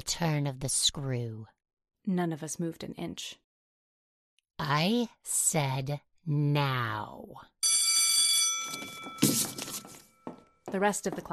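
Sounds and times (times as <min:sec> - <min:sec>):
speech: 0:00.0 - 0:03.4, 0:04.6 - 0:07.5, 0:10.7 - 0:11.3
electric school bell ringing: 0:07.6 - 0:10.3
clattering and shuffling: 0:08.6 - 0:10.4.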